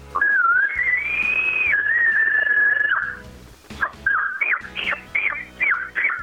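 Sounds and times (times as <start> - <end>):
imitated small bull elk chuckle call: 0.2 - 3.2, 3.8 - 6.2.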